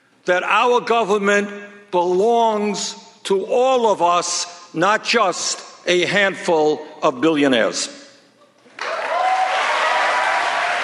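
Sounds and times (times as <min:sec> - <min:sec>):
speech: 0:00.2 - 0:08.0
large rally crowd applause and cheering: 0:08.7 - 0:10.8.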